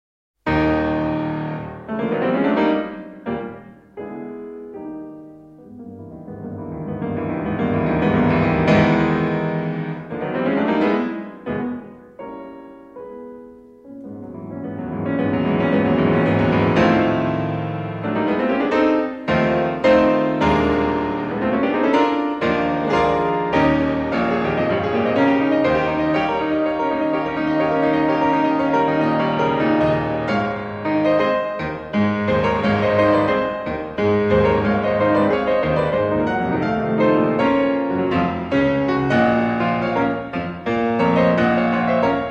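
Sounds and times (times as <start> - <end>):
polonaise: 0.5 - 42.2.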